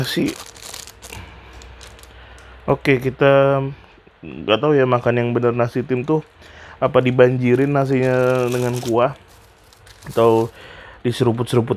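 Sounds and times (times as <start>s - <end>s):
speech: 0.0s - 0.5s, 2.7s - 9.2s, 10.0s - 11.7s
tearing open plastic soup packet: 0.0s - 2.6s, 6.0s - 10.8s.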